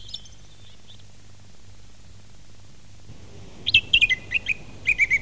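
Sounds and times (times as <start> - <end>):
song thrush singing: 3.1 - 5.1.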